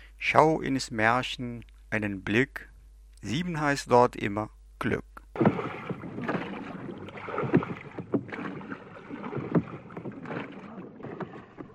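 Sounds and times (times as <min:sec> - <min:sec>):
speech: 0:00.3 - 0:05.6
canoe paddles dipping and pulling through water: 0:05.4 - 0:11.7.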